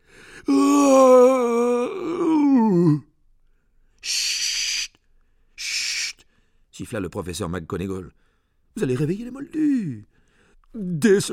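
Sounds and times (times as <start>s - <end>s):
person howling like a wounded dog: 0.5s - 3.1s
speech: 6.9s - 11.3s.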